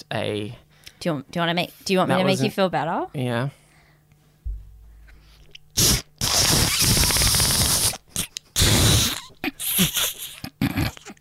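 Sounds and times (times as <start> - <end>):
speech: 0.1 - 3.6
loud airy farts: 5.8 - 11.0.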